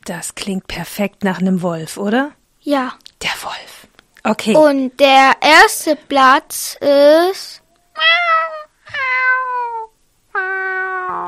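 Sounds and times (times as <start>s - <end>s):
speech: 0.0s - 8.3s
kitten meowing: 8.0s - 11.2s.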